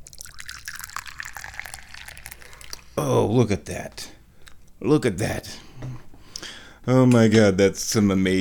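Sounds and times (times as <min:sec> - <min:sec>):
tea being poured: 0:00.0 - 0:03.0
speech: 0:03.0 - 0:04.2, 0:04.8 - 0:05.6, 0:06.9 - 0:08.3.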